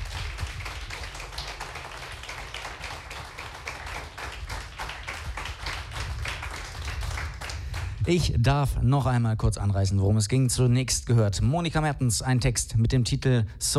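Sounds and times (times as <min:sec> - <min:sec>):
crowd applause: 0:00.0 - 0:08.0
speech: 0:08.0 - 0:13.7.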